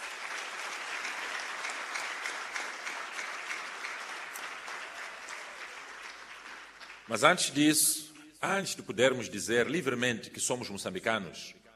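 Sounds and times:
audience applause: 0.0 - 8.0
speech: 7.1 - 11.6.

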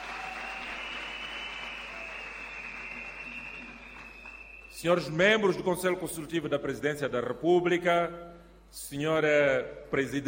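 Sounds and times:
crowd applauding: 0.0 - 4.8
speech: 4.8 - 10.2.

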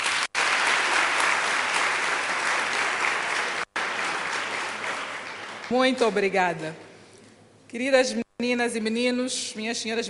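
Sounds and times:
audience applause: 0.0 - 6.0
speech: 5.7 - 6.8, 7.7 - 10.0.

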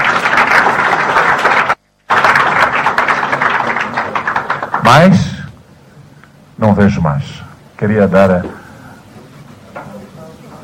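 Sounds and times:
crowd applauding: 0.0 - 5.3
speech: 4.9 - 5.3, 6.6 - 8.6.

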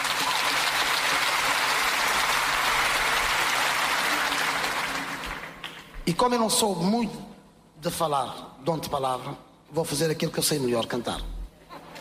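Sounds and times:
audience applause: 0.0 - 6.0
speech: 6.1 - 11.4.

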